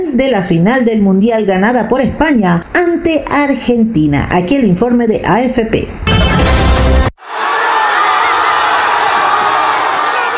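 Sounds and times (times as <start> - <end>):
speech: 0.0 - 6.0
crowd cheering in celebration in Madrid: 7.2 - 10.3.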